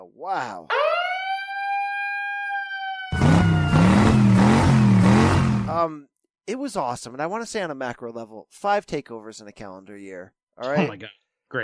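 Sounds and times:
speech: 0.1 - 0.9, 5.7 - 11.6
siren sound effect: 0.7 - 5.7.

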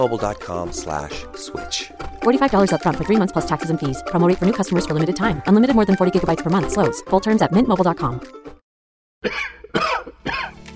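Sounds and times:
speech: 0.0 - 8.4, 9.2 - 9.6
person coughing: 9.2 - 10.6.

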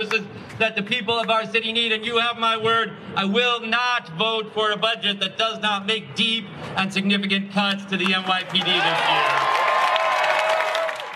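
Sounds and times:
speech: 0.0 - 9.6
crowd applauding and cheering: 8.2 - 11.1.

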